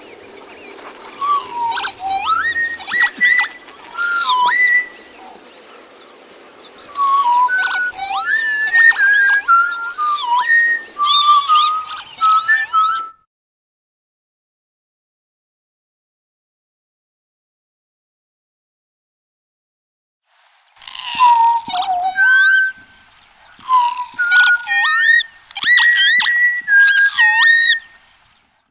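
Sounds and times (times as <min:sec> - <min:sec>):
bird studies: 0:00.0 - 0:13.2, 0:20.4 - 0:28.6.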